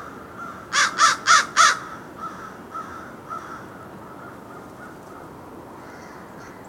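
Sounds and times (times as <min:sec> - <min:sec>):
American crow cawing: 0:00.0 - 0:06.6.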